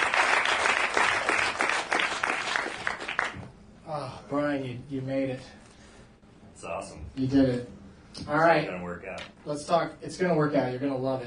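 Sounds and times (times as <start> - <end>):
audience applauding a comedian on a comedy show: 0.0 - 3.4
speech: 4.6 - 5.6, 6.6 - 11.2.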